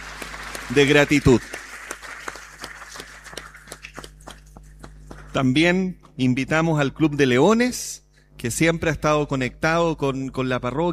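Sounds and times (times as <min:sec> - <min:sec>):
audience applause: 0:00.0 - 0:05.4
speech: 0:00.7 - 0:01.6, 0:05.4 - 0:10.9.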